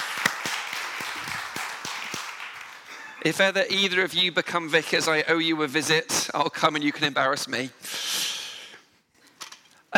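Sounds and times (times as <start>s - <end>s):
audience clapping: 0.0s - 3.2s
speech: 3.2s - 8.0s.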